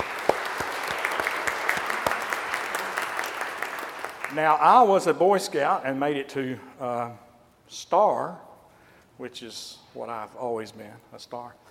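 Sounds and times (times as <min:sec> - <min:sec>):
audience applause: 0:00.0 - 0:04.8
speech: 0:04.3 - 0:08.5, 0:09.2 - 0:11.7.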